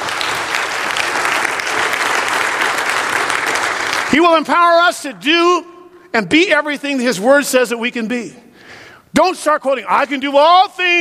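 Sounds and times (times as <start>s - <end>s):
audience applause: 0.0s - 4.3s
speech: 4.1s - 8.4s, 9.2s - 10.9s.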